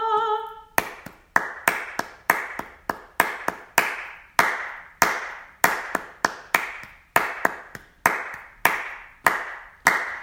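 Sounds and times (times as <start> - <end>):
hands clapping along to song: 0.2 - 10.2.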